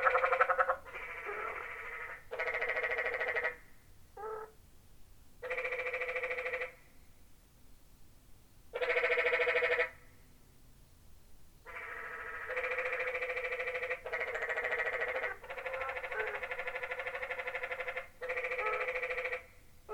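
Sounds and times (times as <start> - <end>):
canyon tree frog giving rasping pulsed trills: 0.0 - 3.6, 5.4 - 6.8, 8.8 - 10.0, 11.7 - 19.9.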